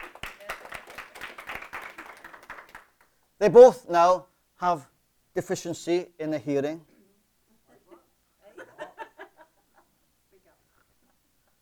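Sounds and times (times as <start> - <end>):
audience clapping: 0.0 - 3.2
speech: 3.4 - 6.9
laughter: 7.9 - 9.9.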